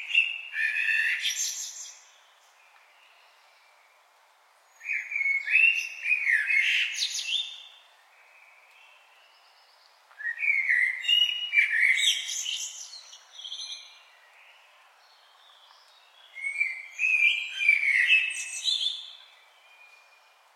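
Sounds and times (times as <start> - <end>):
common blackbird singing: 0.0 - 2.2, 4.8 - 20.4.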